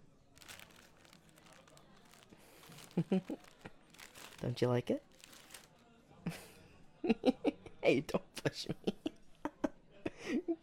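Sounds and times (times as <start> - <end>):
paper crinkling as a greeting card is opened: 0.4 - 5.9
speech: 3.0 - 3.5, 4.4 - 5.1, 7.0 - 9.0.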